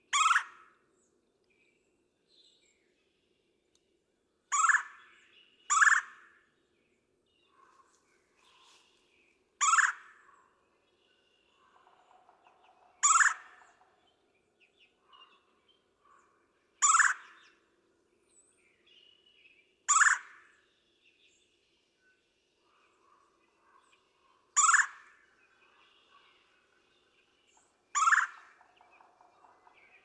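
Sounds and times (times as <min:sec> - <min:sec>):
Red-bellied Woodpecker: 0:00.0 - 0:00.9, 0:04.5 - 0:06.4, 0:09.6 - 0:17.8, 0:19.9 - 0:20.8, 0:22.7 - 0:30.0.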